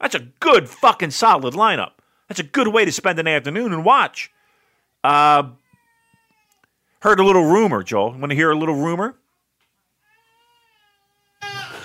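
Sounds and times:
speech: 0.1s - 4.4s, 5.0s - 5.6s, 7.0s - 9.2s
infant baby crying: 5.6s - 6.6s, 10.0s - 11.8s.

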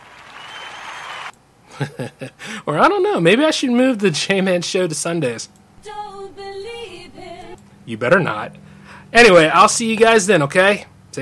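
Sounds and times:
clapping: 0.0s - 1.3s
speech: 1.8s - 6.0s, 7.9s - 11.1s.

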